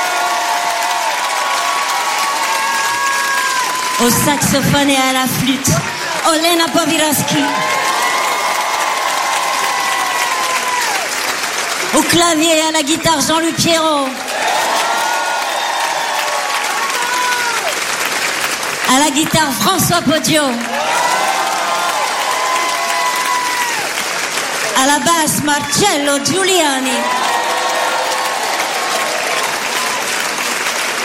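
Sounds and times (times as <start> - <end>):
scattered cheers: 0.0 - 4.8, 6.9 - 11.4, 14.1 - 18.0, 20.6 - 24.8, 26.7 - 31.0
crowd applauding: 0.0 - 31.0
person announcing over the clapping: 4.0 - 7.7, 11.9 - 14.2, 18.9 - 20.8, 24.7 - 27.1
speech: 4.0 - 7.8, 12.0 - 14.2, 18.9 - 20.7, 24.8 - 27.2.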